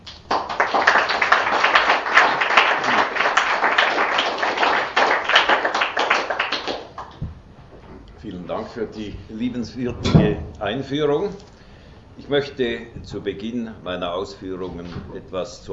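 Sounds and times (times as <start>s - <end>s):
audience applause: 0.0s - 7.2s
speech: 8.7s - 11.5s, 12.3s - 15.7s.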